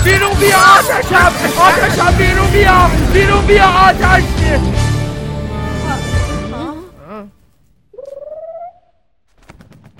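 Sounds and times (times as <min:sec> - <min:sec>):
speech: 0:00.1 - 0:04.9
bird calling: 0:07.9 - 0:09.1.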